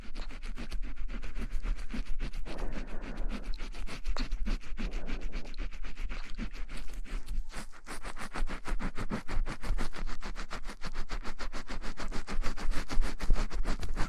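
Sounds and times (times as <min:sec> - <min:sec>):
scalp scratched while hair is washed with shampoo: 0:00.0 - 0:14.0
steady low hum: 0:02.3 - 0:07.0.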